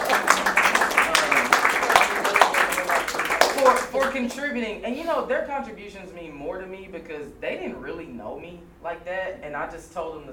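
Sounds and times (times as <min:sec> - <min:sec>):
audience applause: 0:00.0 - 0:04.2
speech: 0:04.1 - 0:10.3.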